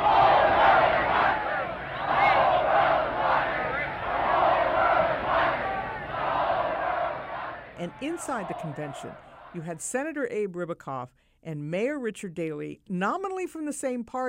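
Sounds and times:
large crowd of protesters chanting and shouting in the street: 0.0s - 9.8s
speech: 8.0s - 14.2s.

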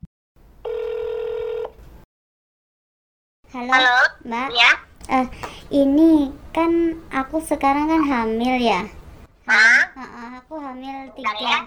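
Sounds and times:
ringback tone on an outgoing phone call: 0.6s - 1.8s
speech: 3.6s - 11.6s.

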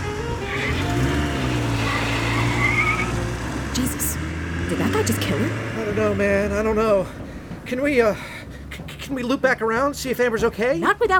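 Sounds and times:
car engine roaring in a fast getaway: 0.0s - 8.9s
speech: 5.0s - 8.3s, 9.1s - 11.1s.

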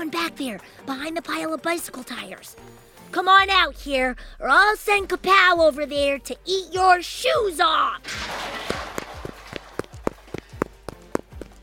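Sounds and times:
speech: 0.2s - 8.7s
running footsteps of someone in a yellow hazmat suit: 8.7s - 11.6s.

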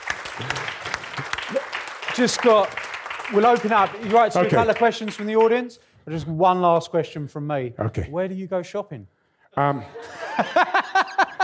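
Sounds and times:
audience applause: 0.0s - 5.7s
speech: 2.2s - 10.8s
laughter: 9.8s - 11.4s.

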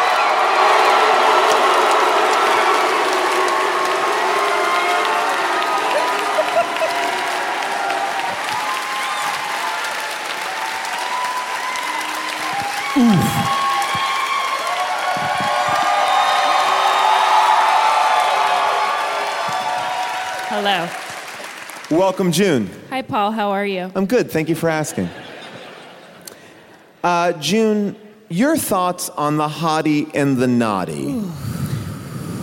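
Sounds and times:
studio audience clapping: 0.0s - 22.7s
laughter: 5.8s - 7.5s, 24.6s - 26.6s
speech: 22.0s - 25.3s, 27.0s - 31.5s.

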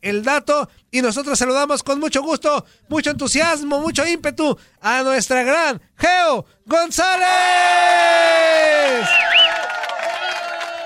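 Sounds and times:
speech: 0.0s - 9.3s
studio applause and cheering: 7.8s - 10.8s.

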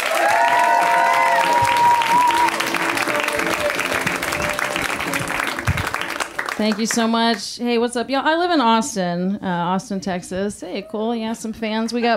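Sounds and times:
stand-up comedy show audience clapping and cheering: 0.0s - 7.4s
speech: 6.6s - 12.1s.

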